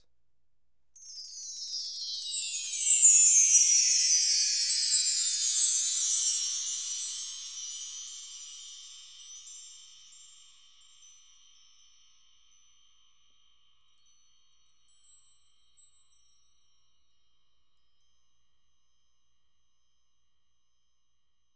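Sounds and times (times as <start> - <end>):
bells: 1.0 - 17.2.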